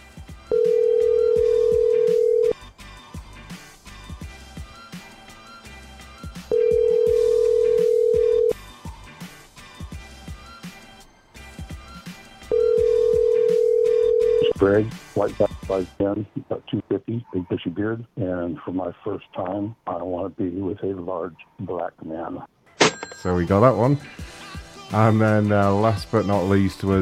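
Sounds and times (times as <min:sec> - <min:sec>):
telephone voicemail tones: 0:00.5 - 0:02.6, 0:06.5 - 0:08.6, 0:12.5 - 0:14.6
speech: 0:14.7 - 0:22.5, 0:23.2 - 0:27.0.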